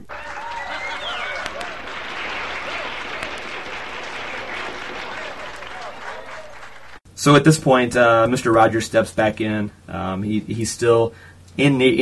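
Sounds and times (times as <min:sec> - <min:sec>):
canned applause: 0:00.0 - 0:07.0
speech: 0:07.2 - 0:12.0.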